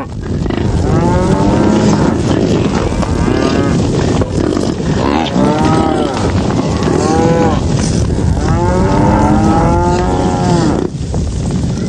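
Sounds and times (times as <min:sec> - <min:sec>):
herd of cattle mooing: 0:00.0 - 0:10.9.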